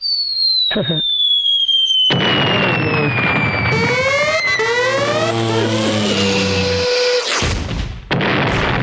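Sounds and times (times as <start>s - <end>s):
falling whistle of an explosion sound effect: 0.0s - 7.4s
explosion sound effect blast with rumbling and crackling bursts: 2.1s - 8.8s.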